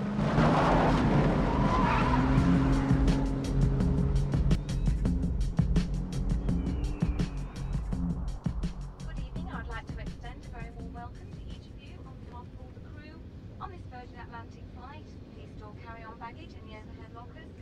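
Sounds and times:
tires skidding on loose ground: 0.0 - 4.9
car engine revving: 0.0 - 11.0.

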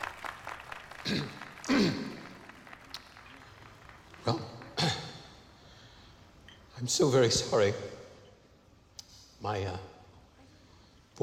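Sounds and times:
unenthusiastic clapping: 0.0 - 5.2
speech: 1.0 - 2.0, 6.8 - 8.0, 9.4 - 9.9.

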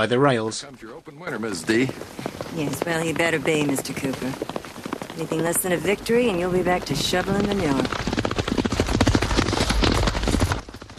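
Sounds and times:
speech: 0.0 - 4.6, 5.2 - 8.1
two horses galloping past on a racetrack: 0.0 - 10.9.

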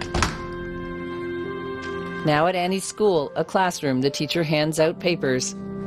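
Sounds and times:
door closing: 0.0 - 0.6
speech: 2.2 - 5.7.

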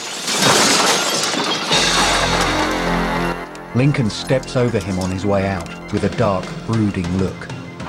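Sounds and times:
glass doors shattering: 0.0 - 6.3
speech: 3.7 - 7.6.

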